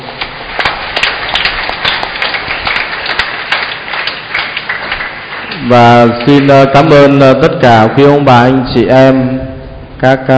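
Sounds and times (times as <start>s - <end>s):
crowd applause: 0.0s - 7.2s
speech: 5.7s - 9.4s, 10.0s - 10.3s.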